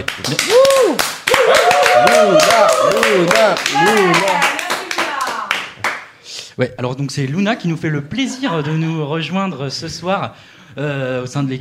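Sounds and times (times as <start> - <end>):
speech: 0.0 - 1.1, 6.6 - 11.5
people clapping: 0.0 - 6.2.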